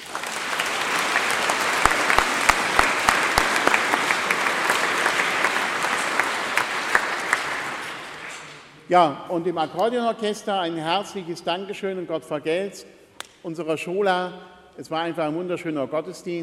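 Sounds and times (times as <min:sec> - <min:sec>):
audience applause: 0:00.0 - 0:08.7
speech: 0:08.9 - 0:16.4.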